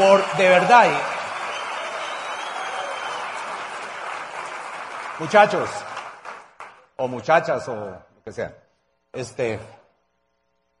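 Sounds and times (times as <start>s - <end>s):
speech: 0.0s - 1.1s, 5.2s - 5.9s, 7.0s - 9.8s
audience applause: 0.0s - 6.9s.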